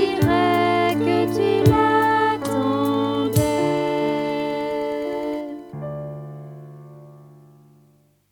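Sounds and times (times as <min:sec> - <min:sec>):
two voices singing: 0:00.0 - 0:06.0.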